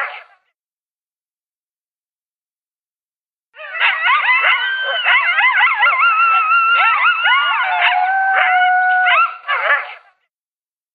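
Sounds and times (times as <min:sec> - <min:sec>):
coyote howling and yipping: 0:03.6 - 0:10.0.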